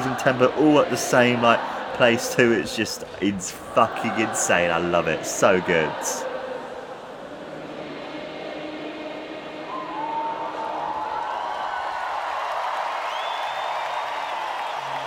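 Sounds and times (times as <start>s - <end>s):
speech: 0.0s - 6.3s
crowd cheering and clapping along: 0.0s - 6.7s, 9.5s - 15.0s.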